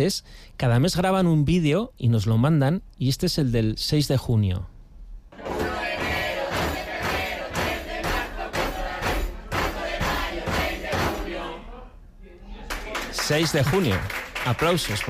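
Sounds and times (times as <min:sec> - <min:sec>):
speech: 0:00.0 - 0:04.7, 0:13.3 - 0:15.0
group singing: 0:05.3 - 0:12.0
group banging on table at dinner: 0:05.4 - 0:11.4.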